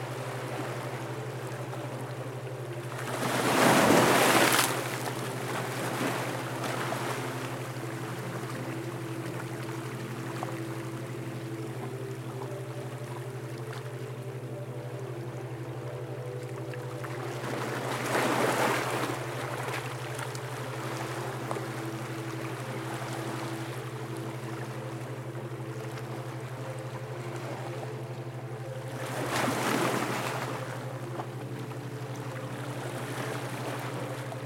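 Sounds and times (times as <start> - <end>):
calming ocean waves: 0.0 - 34.4.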